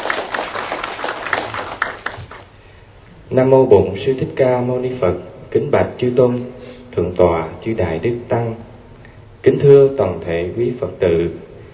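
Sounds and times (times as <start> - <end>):
audience of Buddhist monks, nuns and lay followers clapping in an assembly hall: 0.0 - 2.5
speech: 3.3 - 8.7, 9.4 - 11.4.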